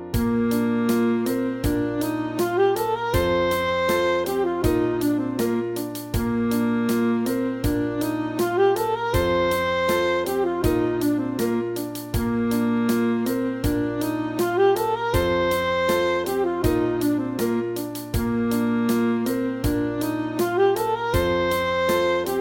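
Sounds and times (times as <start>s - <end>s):
saxophone study: 0.2s - 22.3s.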